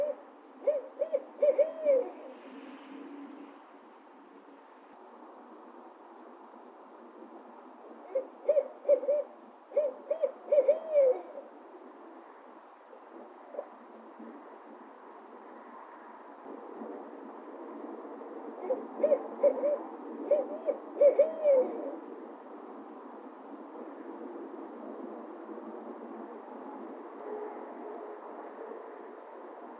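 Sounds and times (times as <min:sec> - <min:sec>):
noisy owl calling: 0:00.0 - 0:02.2, 0:08.1 - 0:11.5, 0:18.6 - 0:22.0.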